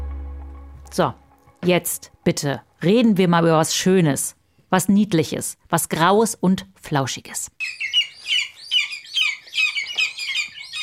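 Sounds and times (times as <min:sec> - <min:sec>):
speech: 0:00.9 - 0:07.9
lesser spotted eagle chicks calling: 0:07.6 - 0:10.8.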